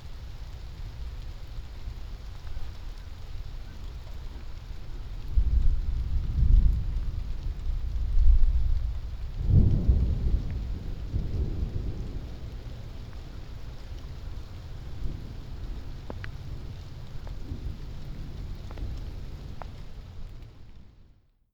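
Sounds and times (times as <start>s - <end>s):
thunder: 4.9s - 20.5s.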